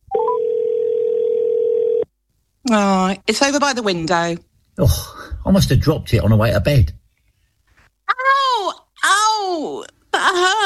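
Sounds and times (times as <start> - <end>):
misplaced phone ringing tones, rising beeps and steady tone: 0.1 - 2.1
speech: 2.7 - 7.0, 9.5 - 10.6.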